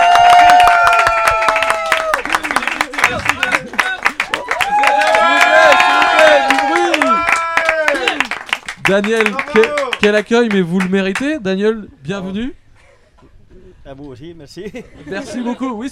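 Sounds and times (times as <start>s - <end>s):
audience applause and cheering: 0.0s - 10.0s
speech: 8.9s - 12.6s, 13.8s - 15.9s.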